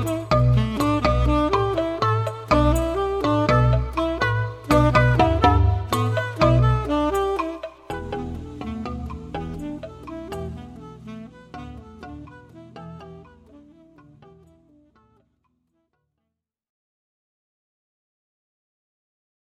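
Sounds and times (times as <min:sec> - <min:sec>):
balafon: 0:00.0 - 0:15.3.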